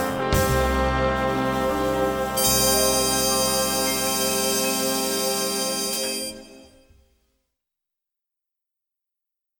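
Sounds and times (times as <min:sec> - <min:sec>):
big band: 0:00.0 - 0:06.5.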